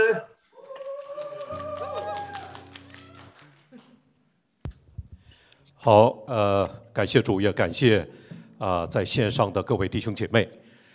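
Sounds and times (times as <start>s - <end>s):
audience applause: 0.6s - 4.0s
speech: 5.8s - 10.7s.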